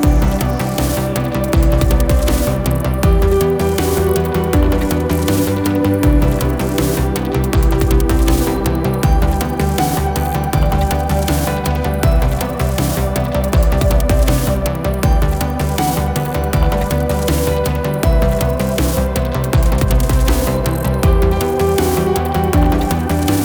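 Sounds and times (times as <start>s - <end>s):
space station music loop: 0.0s - 23.4s.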